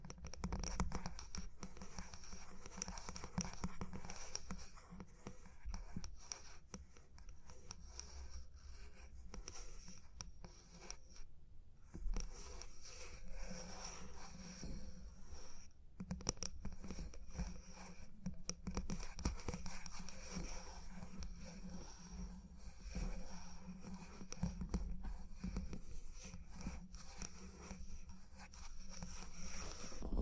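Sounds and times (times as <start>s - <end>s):
tapping and scratching: 0.0s - 11.2s, 12.0s - 30.2s
low steady hum: 30.0s - 30.2s.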